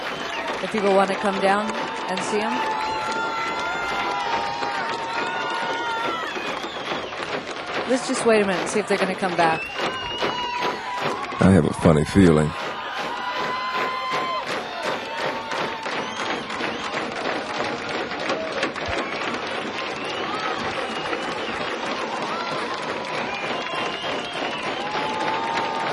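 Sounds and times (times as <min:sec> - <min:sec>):
cheers and whistles: 0:00.0 - 0:25.9
concert crowd applauding: 0:00.0 - 0:25.9
speech: 0:00.6 - 0:02.8, 0:07.9 - 0:10.0, 0:11.4 - 0:12.6.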